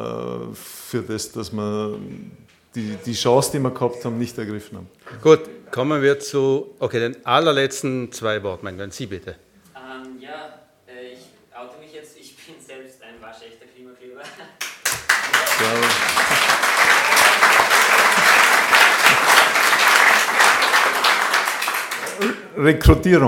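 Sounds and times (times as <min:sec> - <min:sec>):
speech: 0:00.5 - 0:09.5, 0:22.6 - 0:23.2
audience applause: 0:14.6 - 0:22.4.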